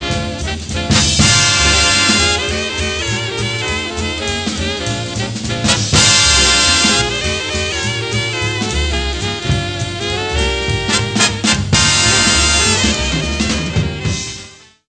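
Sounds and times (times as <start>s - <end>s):
big band: 0.0s - 14.8s
saxophone: 0.0s - 14.8s.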